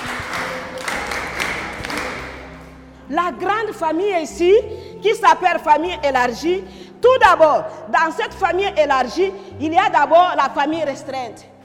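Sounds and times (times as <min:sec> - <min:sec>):
applause: 0:00.0 - 0:02.6
speech: 0:03.1 - 0:11.5.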